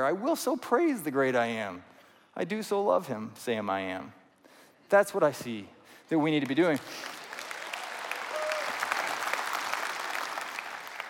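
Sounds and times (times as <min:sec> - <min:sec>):
speech: 0:00.0 - 0:04.2, 0:04.9 - 0:07.2
audience applause: 0:06.4 - 0:11.0.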